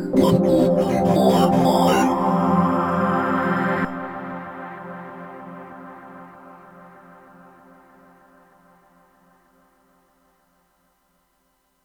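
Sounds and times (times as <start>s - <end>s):
synth pad: 0.0s - 8.5s.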